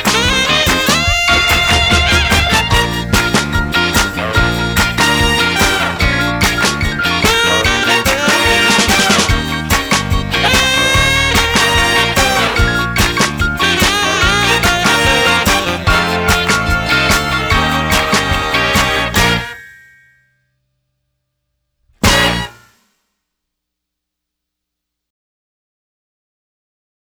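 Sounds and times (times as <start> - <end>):
musical accompaniment: 0.0 - 19.9, 22.0 - 22.7.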